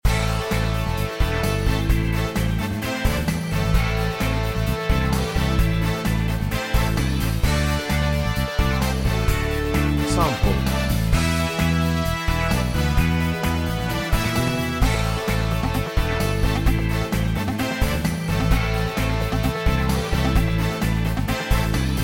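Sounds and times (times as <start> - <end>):
fast tempo music: 0.0 - 22.0.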